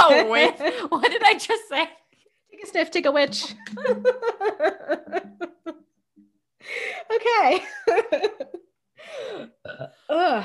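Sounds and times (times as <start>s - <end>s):
speech: 0.2s - 5.8s, 6.6s - 10.4s
laughter: 3.4s - 5.8s, 7.5s - 8.7s
loud throaty burping: 9.4s - 10.1s.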